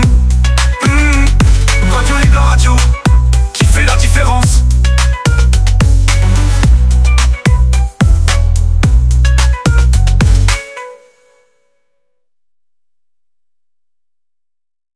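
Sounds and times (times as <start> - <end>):
Afro Trap music promo songs: 0.0 - 11.2.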